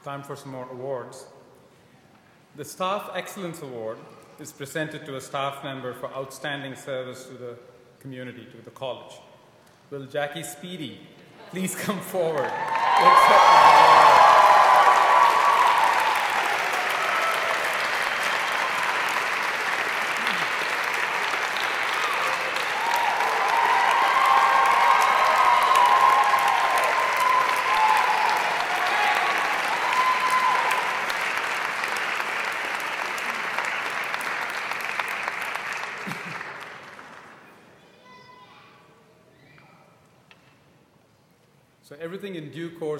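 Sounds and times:
speech: 0.0 - 1.4, 2.6 - 9.3, 9.9 - 14.0
audience applause and cheering: 12.2 - 37.5.

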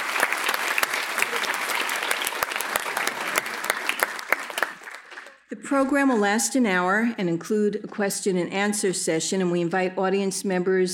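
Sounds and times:
audience applause: 0.0 - 5.4
speech: 5.6 - 10.9.

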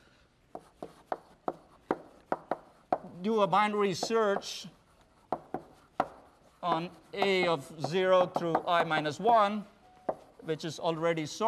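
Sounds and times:
writing on a board during a lecture on sorting algorithms: 0.5 - 9.2, 10.0 - 10.5
speech: 3.2 - 4.8, 6.6 - 9.7, 10.4 - 11.4.

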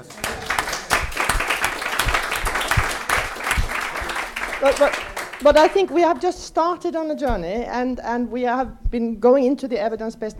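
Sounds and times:
audience applause: 0.0 - 6.3
speech: 4.6 - 10.3.

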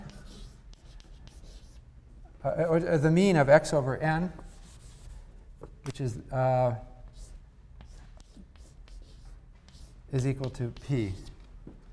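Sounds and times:
writing on a board during a lecture: 0.0 - 1.8, 7.1 - 11.3
speech: 2.4 - 4.4, 5.9 - 6.9, 10.1 - 11.3.

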